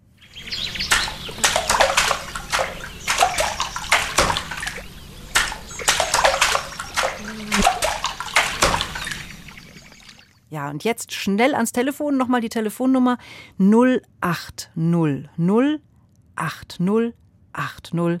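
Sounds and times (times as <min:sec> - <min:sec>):
rhythm tapped with a paddle: 0:00.6 - 0:10.1
speech: 0:10.6 - 0:18.1.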